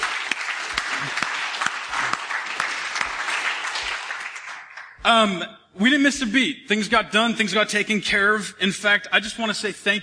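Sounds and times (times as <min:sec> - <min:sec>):
church audience round of applause: 0:00.0 - 0:05.0
speech: 0:05.0 - 0:10.0.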